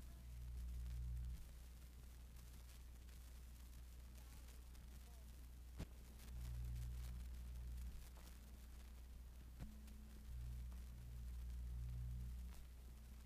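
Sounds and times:
vinyl line noise: 0:00.0 - 0:13.2.

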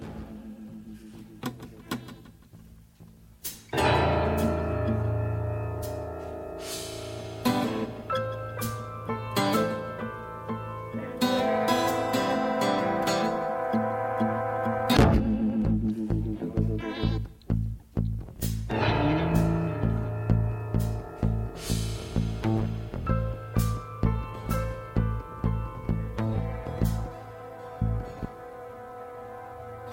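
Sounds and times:
sad guitar loop: 0:00.0 - 0:29.9.

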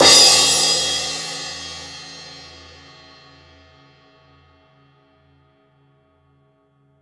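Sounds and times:
cymbals: 0:00.0 - 0:03.0.

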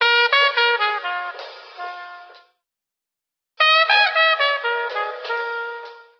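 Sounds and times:
horn loops: 0:00.0 - 0:02.6, 0:03.6 - 0:06.1.

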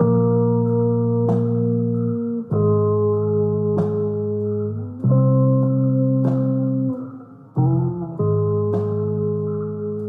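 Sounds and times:
bass: 0:00.0 - 0:10.0.

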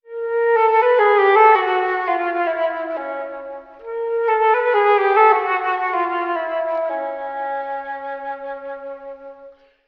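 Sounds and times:
sad flute loop: 0:00.1 - 0:09.6.

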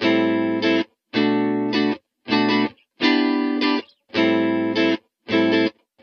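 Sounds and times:
phonk guitar loop: 0:00.0 - 0:06.0.

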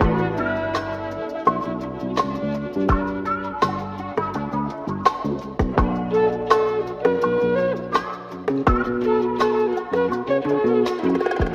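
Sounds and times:
flute loop: 0:00.0 - 0:11.5.

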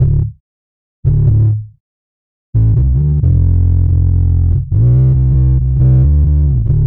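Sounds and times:
bass: 0:00.0 - 0:00.4, 0:01.0 - 0:01.8, 0:02.6 - 0:06.8.

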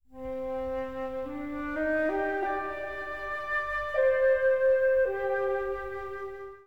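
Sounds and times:
sad flute: 0:00.1 - 0:06.6.

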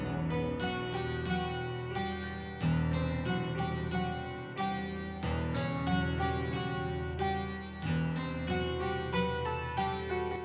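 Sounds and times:
sad guitar music: 0:00.0 - 0:10.4.

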